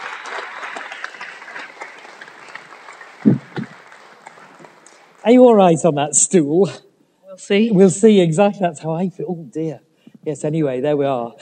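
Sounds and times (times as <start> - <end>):
audience applause welcoming a guest onto a stage: 0.0 - 5.2
low thumps: 3.2 - 3.8
speech: 5.2 - 11.3.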